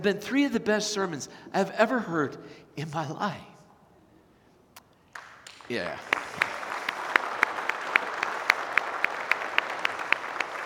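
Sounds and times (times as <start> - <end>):
speech: 0.0 - 3.5, 5.7 - 6.4
audience applause: 5.2 - 10.6.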